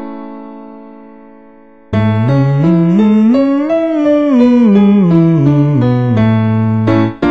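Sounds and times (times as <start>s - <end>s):
hum: 1.9s - 7.1s.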